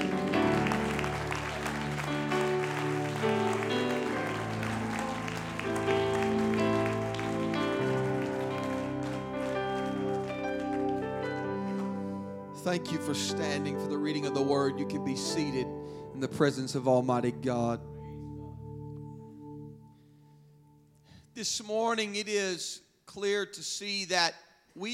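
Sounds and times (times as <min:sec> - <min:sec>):
audience clapping hands: 0:00.0 - 0:13.5
speech: 0:12.6 - 0:17.9, 0:21.4 - 0:24.9.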